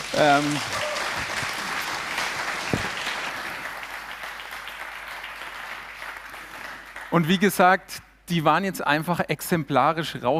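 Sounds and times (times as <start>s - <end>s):
audience applause: 0.0s - 7.4s
speech: 0.2s - 0.9s, 7.1s - 10.3s.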